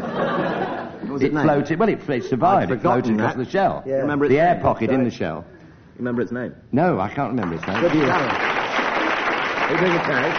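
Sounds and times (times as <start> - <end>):
laughter: 0.0 - 1.2
speech: 1.2 - 8.5, 9.7 - 10.3
quiz audience applause: 7.3 - 10.3.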